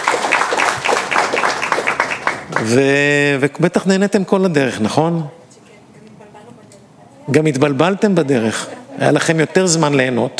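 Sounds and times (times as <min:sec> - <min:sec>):
audience applause: 0:00.0 - 0:03.2
speech: 0:02.6 - 0:05.4, 0:07.3 - 0:10.3.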